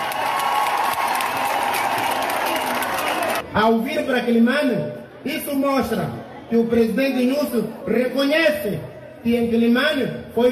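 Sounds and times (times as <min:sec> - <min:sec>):
audience applause for a minister: 0:00.0 - 0:03.4
speech: 0:03.6 - 0:10.5.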